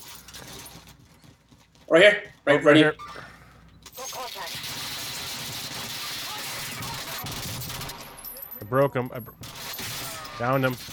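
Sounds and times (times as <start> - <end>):
speech: 1.9 - 3.2, 8.7 - 9.5, 10.4 - 10.9
players talking: 1.9 - 4.7, 5.9 - 7.4, 8.3 - 9.5, 10.2 - 10.8
Call of Duty Warzone game noise: 2.7 - 10.9
gunfire in the video game Call of Duty Warzone: 4.1 - 8.3, 9.4 - 10.9.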